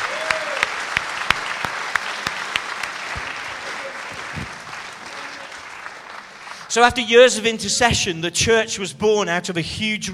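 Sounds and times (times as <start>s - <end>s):
audience hand clapping: 0.0s - 7.2s
speech: 6.8s - 10.1s.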